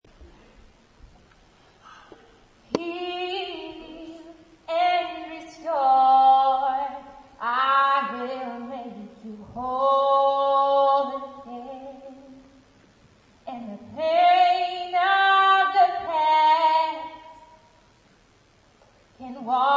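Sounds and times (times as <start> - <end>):
prophetic song: 1.9 - 12.6, 13.4 - 17.8, 19.2 - 19.7.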